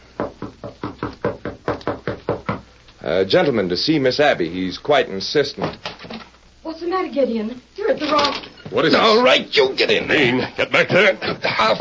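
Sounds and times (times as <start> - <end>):
firm wooden knocking on a door: 0.2 - 2.7
speech: 3.1 - 5.9, 7.1 - 11.8
laughter: 9.9 - 11.8.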